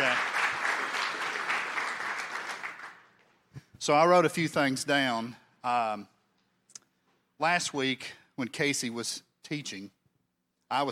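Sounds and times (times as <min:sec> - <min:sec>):
audience applauding with hand claps: 0:00.0 - 0:03.5
speech: 0:03.9 - 0:06.1, 0:07.4 - 0:10.0, 0:10.7 - 0:10.9.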